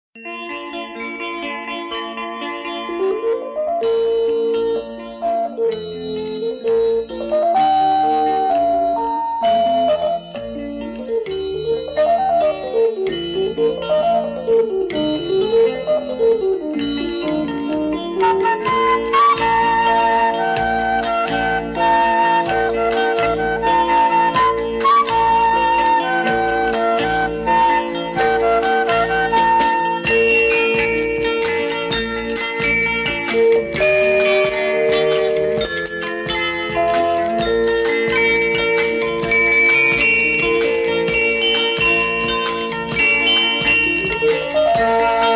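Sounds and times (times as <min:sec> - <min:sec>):
flute instrumental: 0:01.9 - 0:45.3.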